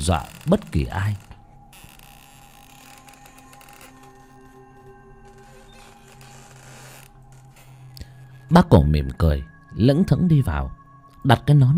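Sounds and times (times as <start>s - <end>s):
speech: 0.0s - 1.3s, 8.5s - 11.7s
old temple doors creaking slowly open: 0.0s - 8.8s.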